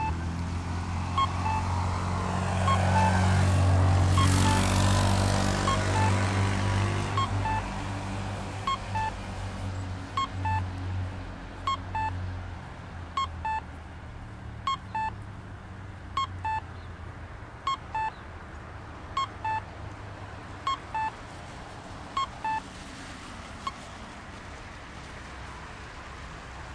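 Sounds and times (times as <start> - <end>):
pedestrian crossing cuckoo signal in Salt Lake City: 0.0 - 10.8, 11.6 - 12.3, 13.1 - 13.7, 14.6 - 15.2, 16.1 - 18.3, 19.0 - 19.8, 20.5 - 21.2, 22.0 - 22.8, 23.6 - 23.9.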